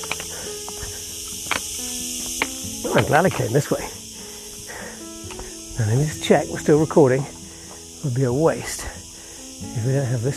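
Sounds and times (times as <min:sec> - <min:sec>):
cicadas chirping: 0:00.0 - 0:10.3
speech: 0:02.8 - 0:04.0, 0:05.8 - 0:07.4, 0:08.0 - 0:09.0, 0:09.7 - 0:10.3.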